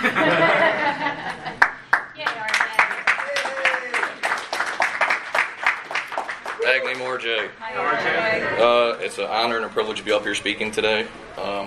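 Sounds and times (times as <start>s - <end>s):
laughter: 0.0s - 1.6s
audience clapping: 1.5s - 7.2s
speech: 7.2s - 11.6s.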